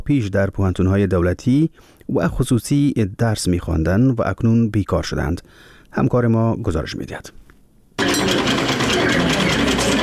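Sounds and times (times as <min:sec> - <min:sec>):
speech: 0:00.1 - 0:07.4
sewing machines running in a tailoring training workshop: 0:08.0 - 0:10.0.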